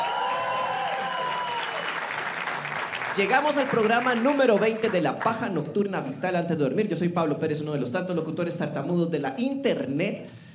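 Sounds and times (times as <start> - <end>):
live audience applause: 0.0 - 5.4
speech: 3.2 - 10.4.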